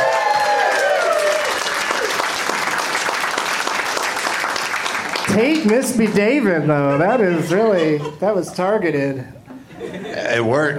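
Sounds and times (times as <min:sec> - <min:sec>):
audience whooping: 0:00.0 - 0:03.2
studio audience applauding a game show contestant: 0:00.0 - 0:06.5
speech: 0:05.4 - 0:09.4, 0:10.3 - 0:10.7
laughter: 0:06.2 - 0:10.7.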